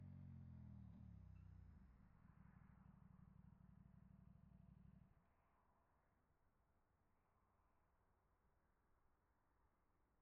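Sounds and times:
KTM RC8R motorcycle fast approach, stop and away: 0.0 - 5.1.

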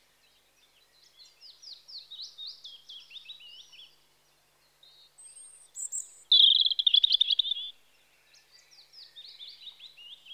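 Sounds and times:
European robin Erithacus rubecula song in spring: 5.8 - 7.7.

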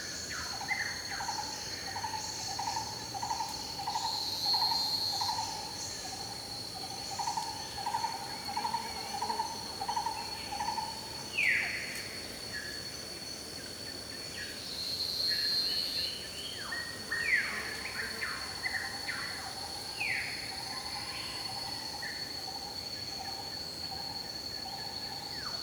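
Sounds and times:
jungle insects in Thailand: 0.0 - 25.6.

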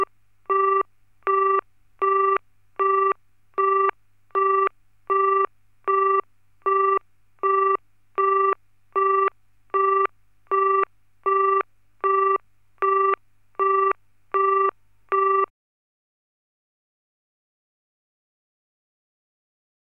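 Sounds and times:
BT telephone line tones: 0.0 - 15.5.

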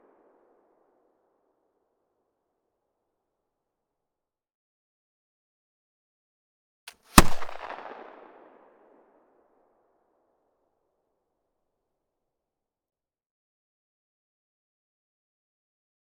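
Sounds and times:
rifled flintlock pistol M1820 firing: 6.9 - 8.0.

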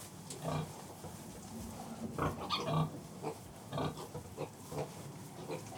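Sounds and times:
pig grunts in a farrowing pen: 0.4 - 0.7, 1.8 - 5.7.

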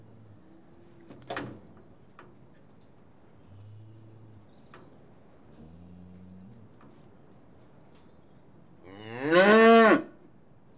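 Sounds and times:
cattle bellowing: 8.9 - 10.1.

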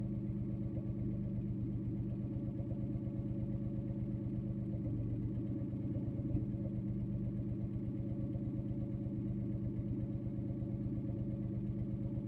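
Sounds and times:
modded 1988 BMW E30 318i street race car idling onboard: 0.1 - 12.2.

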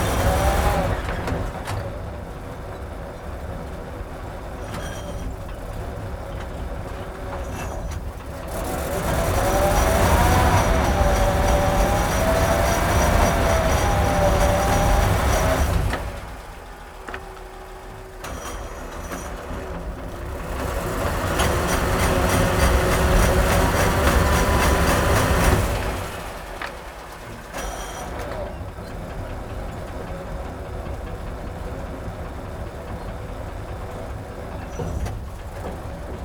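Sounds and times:
self-propelled gun engine driving on stone tiles: 0.0 - 36.2.

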